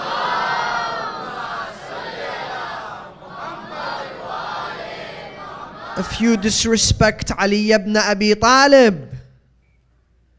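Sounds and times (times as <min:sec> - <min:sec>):
large crowd reciting salawat at a religious gathering: 0:00.0 - 0:06.8
speech: 0:06.0 - 0:09.1.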